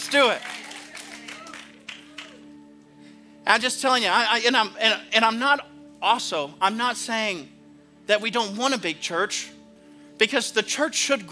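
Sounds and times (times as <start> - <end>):
audience clapping: 0.0 - 2.6
speech: 0.1 - 0.5, 3.5 - 9.6, 10.2 - 11.2.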